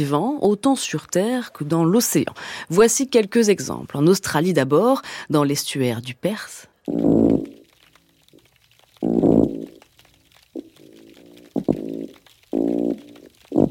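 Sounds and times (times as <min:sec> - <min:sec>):
speech: 0:00.0 - 0:07.5
mulloway fish grunting underwater in the Perth estuary: 0:08.6 - 0:13.6.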